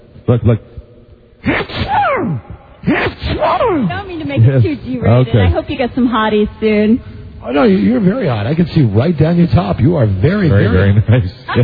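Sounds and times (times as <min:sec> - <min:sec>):
speech: 0:00.3 - 0:00.8, 0:01.5 - 0:11.6
voice imitating a cartoon duck sneezing: 0:01.4 - 0:03.9.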